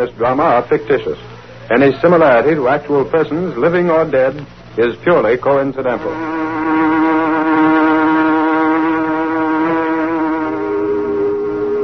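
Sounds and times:
speech: 0.0 - 6.8
factory whistle blowing: 6.1 - 11.8.

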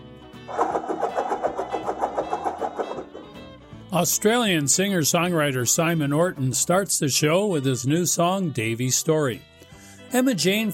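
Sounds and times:
globe being spun with mechanical whirring and ticking: 0.5 - 3.5
speech: 3.9 - 9.5, 10.1 - 10.7.

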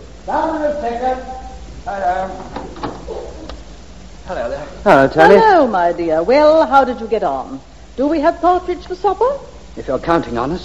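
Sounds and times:
speech: 0.2 - 2.8, 4.3 - 10.6
back door creaking open: 2.4 - 3.5.

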